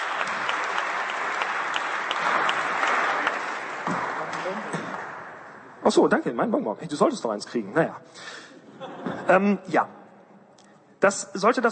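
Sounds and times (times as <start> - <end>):
audience applause: 0.0 - 5.7
speech: 5.9 - 8.4, 9.3 - 10.0, 11.0 - 11.6
laughter: 8.5 - 9.4.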